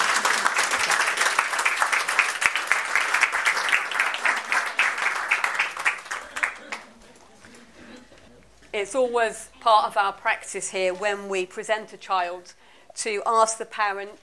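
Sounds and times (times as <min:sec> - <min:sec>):
crowd clapping: 0:00.0 - 0:07.2
speech: 0:08.8 - 0:14.2.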